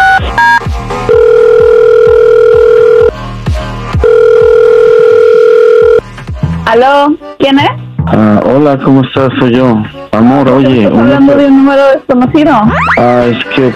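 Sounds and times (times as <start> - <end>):
dialing beeps: 0.0 - 3.1, 4.0 - 6.0
telephone ringback tone: 0.0 - 3.1, 4.0 - 6.0
speech: 6.7 - 13.7.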